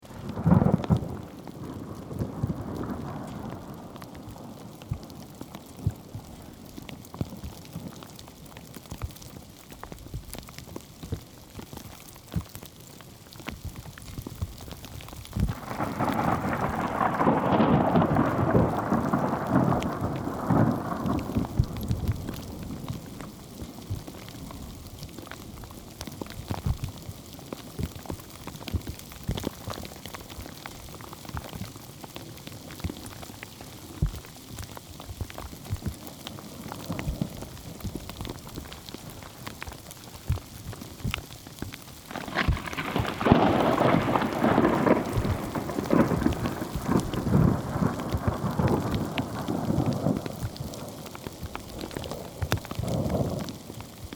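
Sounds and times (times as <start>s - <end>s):
hail in Portugal: 0.0s - 54.1s
thunder in Portugal: 0.2s - 6.5s, 15.4s - 24.4s, 42.1s - 53.7s.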